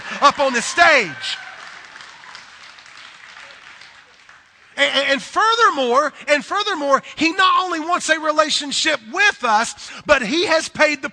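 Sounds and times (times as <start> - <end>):
audience clapping: 0.0 - 5.1
speech: 0.2 - 1.4, 4.8 - 11.1.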